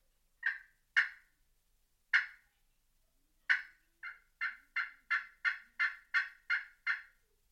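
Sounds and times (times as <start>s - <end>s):
turkey tree yelps on a glass friction call: 0.4s - 1.2s, 3.5s - 7.1s.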